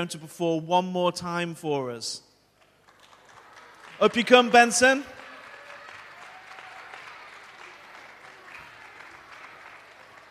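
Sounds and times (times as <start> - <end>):
speech: 0.0 - 2.3, 4.0 - 5.2
sustained applause from a large audience: 2.6 - 10.3.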